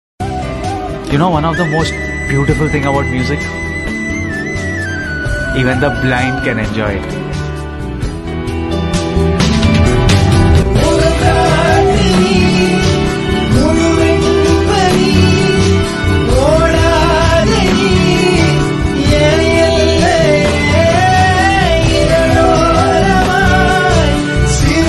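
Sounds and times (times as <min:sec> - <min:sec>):
Tamil sad love song: 0:00.2 - 0:24.8.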